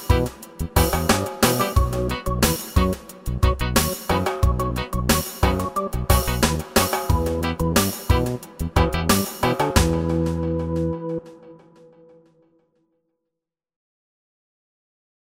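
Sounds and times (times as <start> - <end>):
reggae music: 0.0 - 11.8.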